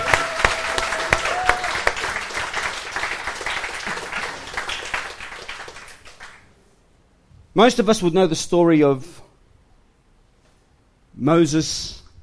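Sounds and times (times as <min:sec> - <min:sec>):
audience applause: 0:00.0 - 0:06.4
speech: 0:07.6 - 0:09.3, 0:11.2 - 0:12.0.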